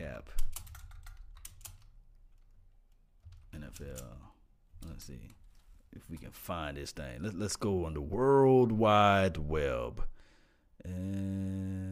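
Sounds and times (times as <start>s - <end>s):
typing on a computer keyboard: 0.4s - 4.2s
speech: 3.8s - 10.2s, 10.8s - 11.8s.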